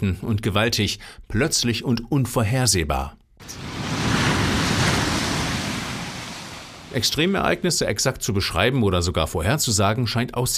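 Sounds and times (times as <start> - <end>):
speech: 0.0 - 3.6, 6.9 - 10.5
huge ocean wave crashing: 3.4 - 7.5.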